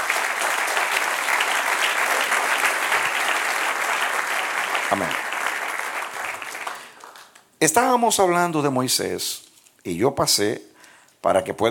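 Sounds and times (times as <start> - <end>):
audience applause: 0.0 - 7.4
speech: 4.9 - 5.2, 7.6 - 11.7.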